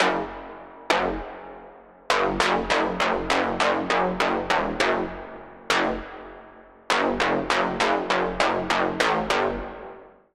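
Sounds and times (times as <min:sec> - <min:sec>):
Sylenth1 synth pluck: 0:02.1 - 0:06.3, 0:06.9 - 0:09.9.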